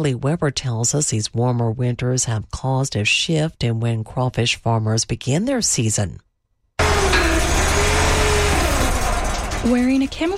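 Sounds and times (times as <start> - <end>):
speech: 0.0 - 6.3, 9.6 - 10.3
fishing boat motor in a flooded rice field in Anahuac, Texas: 6.8 - 10.3.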